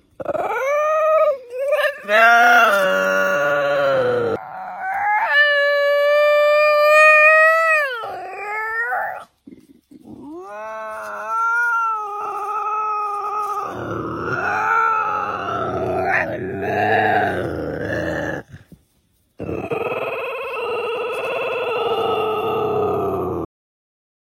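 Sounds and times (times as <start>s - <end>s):
angry howl: 0.2s - 9.3s, 10.2s - 18.5s, 19.4s - 23.5s.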